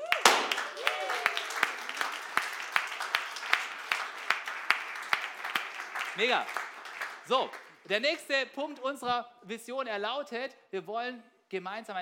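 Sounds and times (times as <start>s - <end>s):
audience applause: 0.0s - 7.9s
speech: 6.2s - 6.7s, 7.3s - 12.0s.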